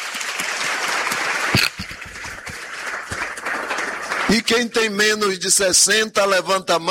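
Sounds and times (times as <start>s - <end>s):
audience applause: 0.0s - 4.8s
speech: 4.3s - 6.8s.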